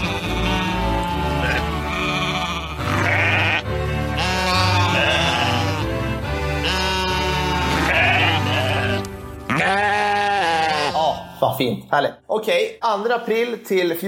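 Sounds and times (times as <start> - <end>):
sheep bleating: 0.0 - 11.2
speech: 11.5 - 14.0.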